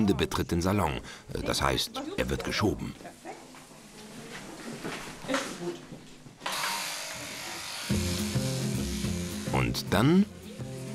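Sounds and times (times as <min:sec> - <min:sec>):
speech: 0:00.0 - 0:03.2, 0:09.7 - 0:10.4
electric shears buzzing shearing an alpaca: 0:06.4 - 0:09.9, 0:10.5 - 0:10.9.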